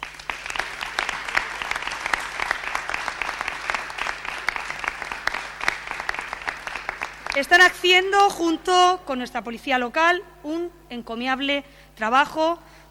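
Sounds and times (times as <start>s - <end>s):
audience applause: 0.0s - 7.6s
speech: 7.4s - 12.9s.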